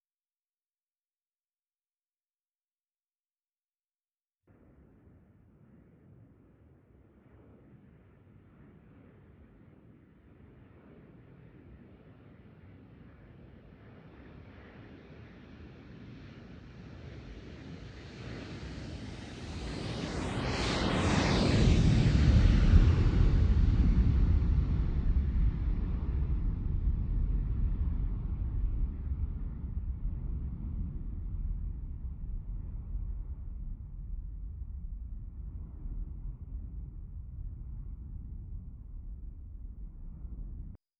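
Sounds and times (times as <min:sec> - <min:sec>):
jet aircraft: 0:07.2 - 0:40.8.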